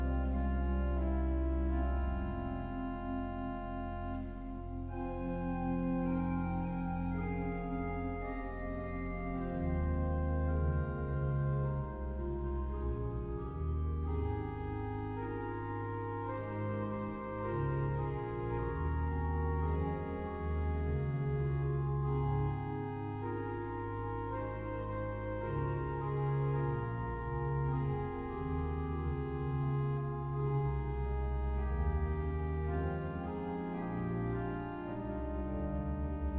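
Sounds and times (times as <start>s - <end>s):
organ solo: 0.0s - 36.3s.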